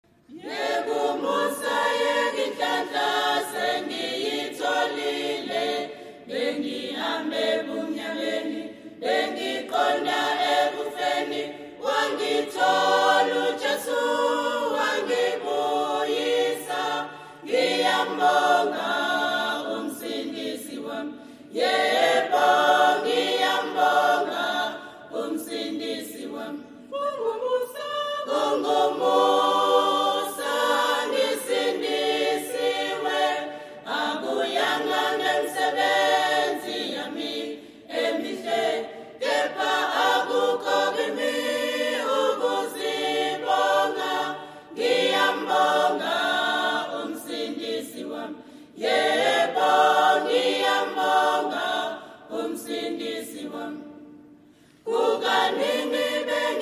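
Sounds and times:
choir singing: 0:00.0 - 0:56.6.

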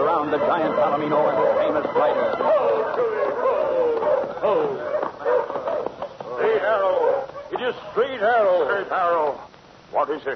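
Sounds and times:
village dogs raising an alarm with howls and yelps: 0:00.0 - 0:08.7
speech: 0:00.3 - 0:03.5, 0:06.6 - 0:10.3.

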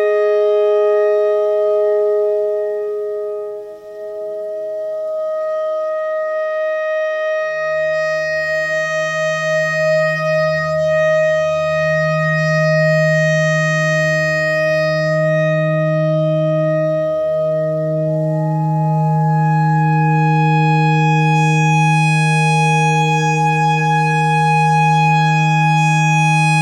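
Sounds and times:
clarinet notes in E: 0:00.0 - 0:26.5.

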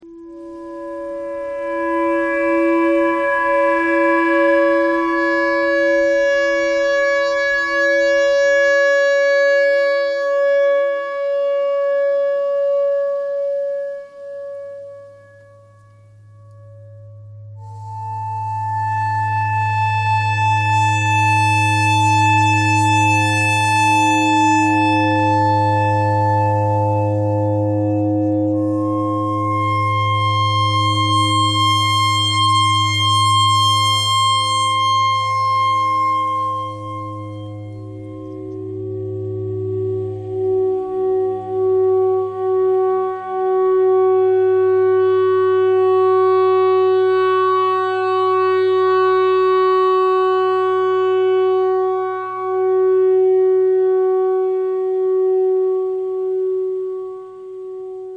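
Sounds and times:
clarinet thread noise: 0:00.0 - 0:09.2, 0:13.4 - 0:43.8
clarinet notes: 0:00.0 - 0:58.1.

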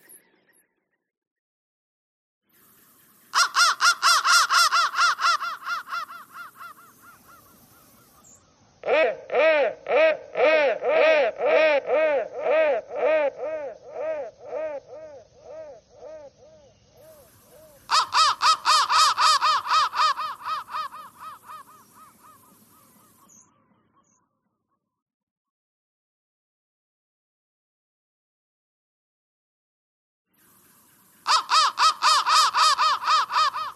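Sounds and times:
crow thread noise: 0:02.5 - 0:24.1, 0:30.4 - 0:33.7.

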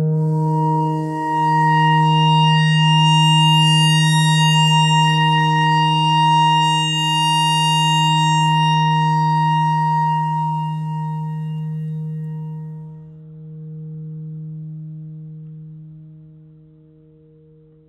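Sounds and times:
clarinet notes in E pentatonic: 0:00.2 - 0:12.8.

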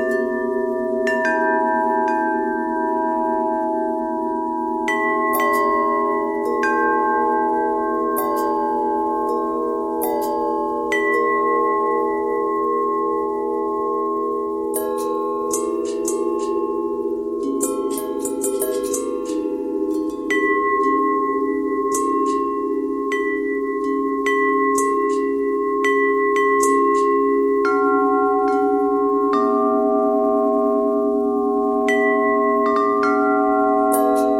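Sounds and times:
long bell tones: 0:00.0 - 0:34.3.

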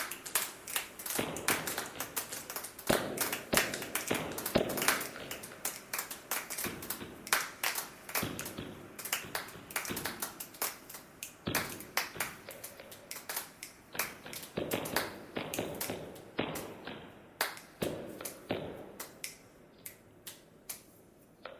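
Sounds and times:
clapping: 0:00.0 - 0:16.8, 0:17.4 - 0:20.9.

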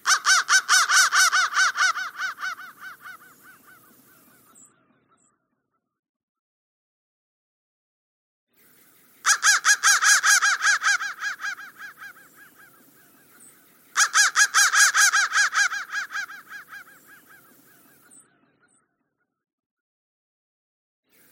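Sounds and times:
crow cawing: 0:00.0 - 0:05.4, 0:09.2 - 0:18.8.

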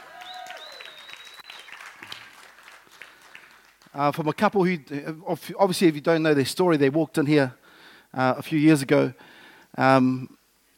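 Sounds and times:
audience applause: 0:00.0 - 0:03.9
speech: 0:04.0 - 0:10.4.

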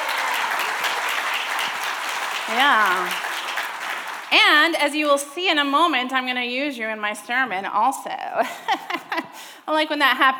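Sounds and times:
audience applause: 0:00.0 - 0:05.2
speech: 0:02.5 - 0:03.3, 0:04.3 - 0:09.0, 0:09.6 - 0:10.3.

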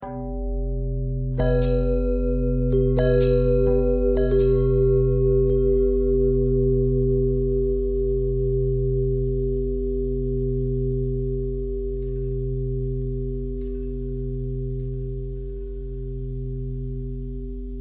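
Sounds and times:
long bell ringing: 0:00.0 - 0:17.7.

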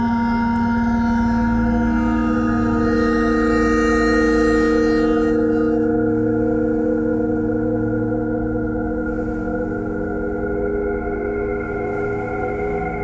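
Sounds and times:
bowed ice: 0:00.7 - 0:13.0.

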